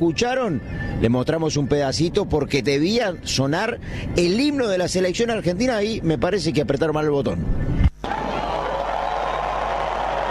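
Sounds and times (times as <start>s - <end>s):
speech: 0.0s - 8.2s
stadium crowd applauding after national anthem: 8.0s - 10.2s.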